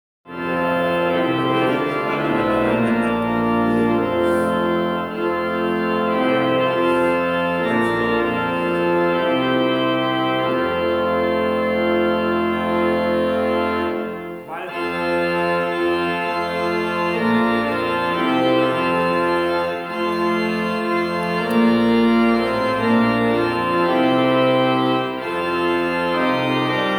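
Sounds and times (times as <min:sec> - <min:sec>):
organ: 0:00.3 - 0:26.9
laughter: 0:00.8 - 0:05.4.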